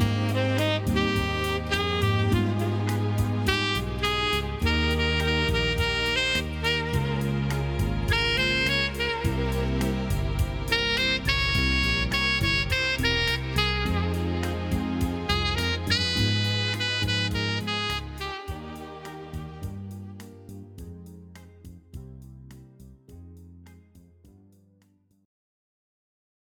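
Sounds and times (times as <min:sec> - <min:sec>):
saxophone playing: 0:00.0 - 0:20.6.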